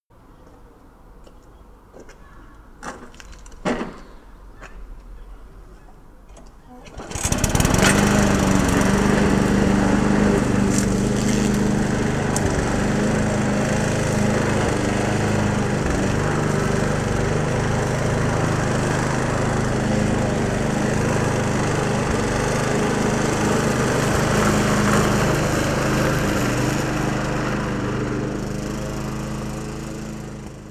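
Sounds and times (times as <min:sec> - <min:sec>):
lawn mowing: 0:06.7 - 0:30.6.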